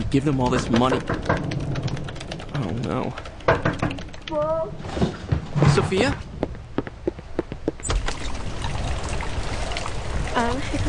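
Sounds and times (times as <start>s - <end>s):
steady rain: 0.0s - 4.8s, 7.9s - 10.8s
speech: 0.1s - 1.5s, 2.6s - 6.3s, 10.4s - 10.8s.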